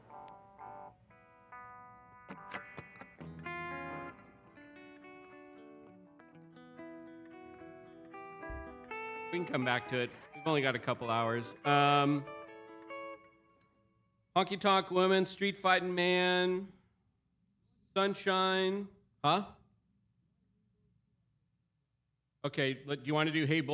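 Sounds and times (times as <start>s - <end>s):
vocals: 9.4s - 12.3s, 14.4s - 16.8s, 18.0s - 19.6s, 22.4s - 23.7s.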